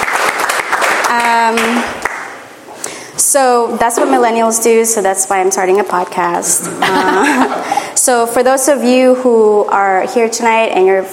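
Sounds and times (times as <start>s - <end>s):
audience applause: 0.0s - 1.8s
speech: 1.1s - 2.0s, 3.3s - 11.1s
laughter: 6.6s - 8.0s.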